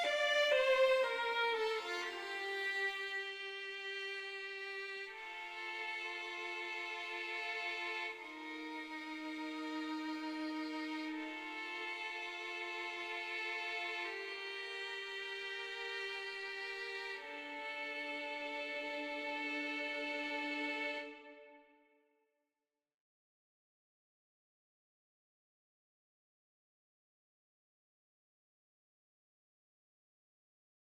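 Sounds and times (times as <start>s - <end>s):
violin: 0.0s - 21.9s.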